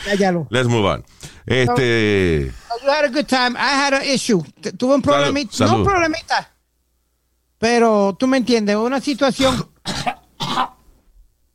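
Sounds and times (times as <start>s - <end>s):
speech: 0.0s - 6.5s, 7.6s - 10.8s
harsh raspy coughs after swallowing something: 9.4s - 10.8s.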